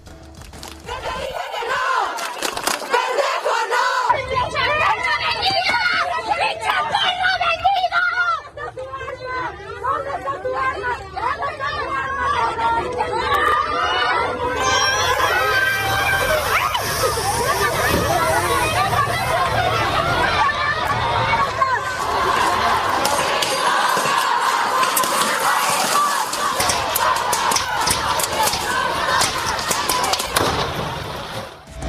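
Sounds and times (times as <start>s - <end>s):
protest crowd shouting: 0.9s - 31.7s
laughter: 8.2s - 11.5s, 13.5s - 31.1s.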